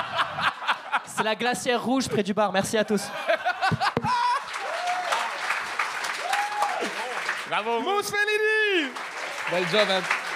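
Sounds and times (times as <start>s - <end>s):
laughter: 0.0s - 2.1s, 2.7s - 5.0s
speech: 1.2s - 4.2s, 7.5s - 10.2s
comedy club audience applause: 4.0s - 10.3s
voices calling out and cheering: 4.1s - 10.3s.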